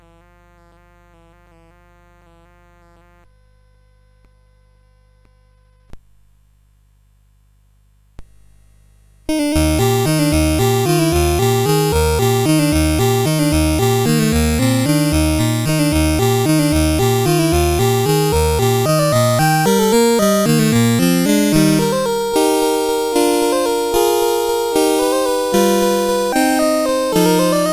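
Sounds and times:
waltz: 9.3s - 27.7s.

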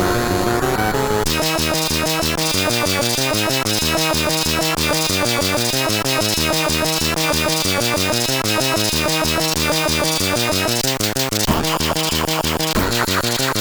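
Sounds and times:
chiptune music on SID CSG8580R5 chip: 0.2s - 13.5s.

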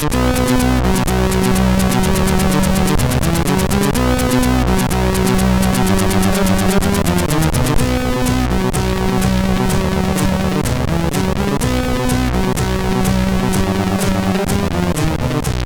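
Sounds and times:
MOS6581 single echo: 0.1s - 15.5s.

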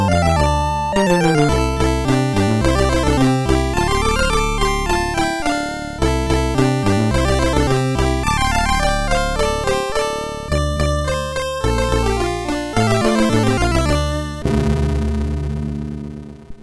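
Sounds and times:
MOS6581R4 SID chip music: 0.0s - 16.3s.

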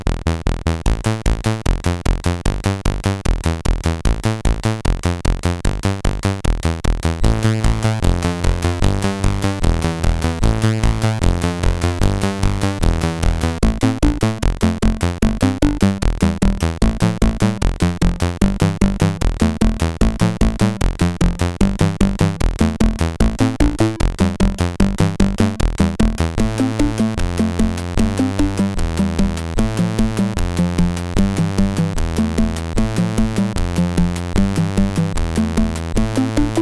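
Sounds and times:
small fast SID chip music on CSG8580R5: 0.2s - 36.5s.

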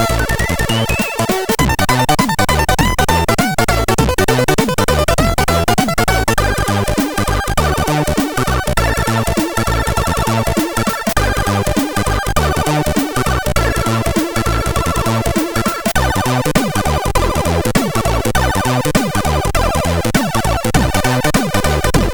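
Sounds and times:
fusion jazz on a MOS6581R3 SID chip: 0.0s - 22.1s.

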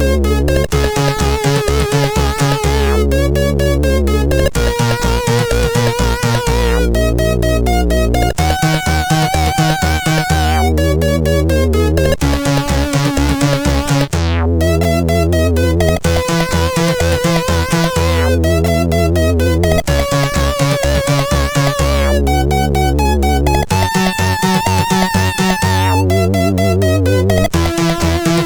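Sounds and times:
intro tune on CSG8580R5 sound chip: 0.0s - 28.4s.

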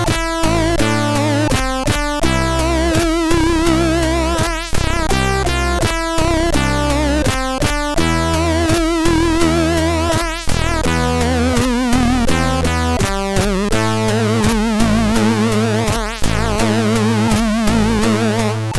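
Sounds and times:
MOS6581R4 SID chip synth: 0.0s - 18.7s.

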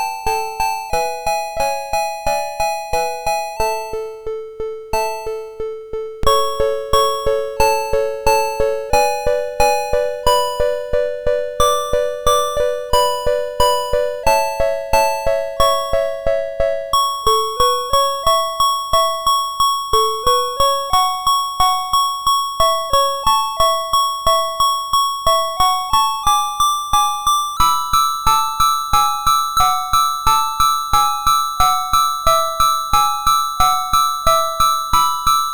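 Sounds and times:
chiptune on MOS6581R3 sound chip: 0.1s - 35.5s.

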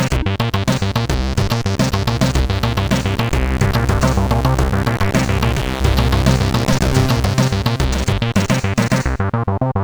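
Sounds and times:
CSG8580R5 synth truck sound: 0.1s - 9.7s.

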